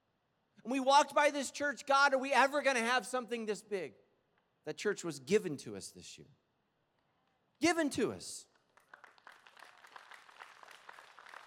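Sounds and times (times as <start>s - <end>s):
speech: 0.6s - 4.0s, 4.6s - 6.4s, 7.6s - 8.5s
soft golf clapping from audience: 8.5s - 11.4s.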